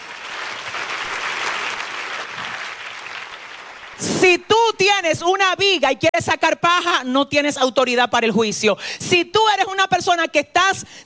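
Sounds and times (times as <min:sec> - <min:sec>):
audience applause: 0:00.0 - 0:04.0
speech: 0:04.0 - 0:11.0.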